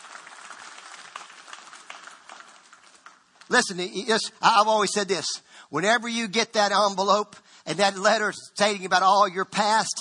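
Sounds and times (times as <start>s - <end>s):
crowd clapping: 0.0s - 3.9s
speech: 3.5s - 9.9s.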